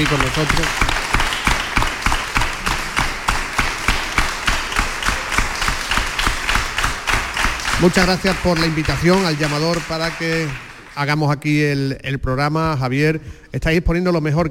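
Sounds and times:
speech: 0.0s - 1.0s, 7.8s - 14.4s
audience applause: 0.0s - 11.2s.

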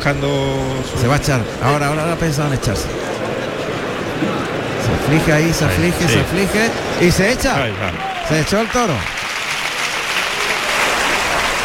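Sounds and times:
speech: 0.0s - 3.1s, 4.2s - 9.2s
bullring crowd ovation: 3.4s - 11.6s.

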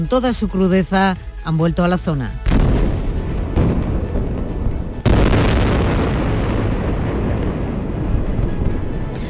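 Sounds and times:
speech: 0.0s - 2.4s
explosions from bombardment: 2.4s - 9.2s.

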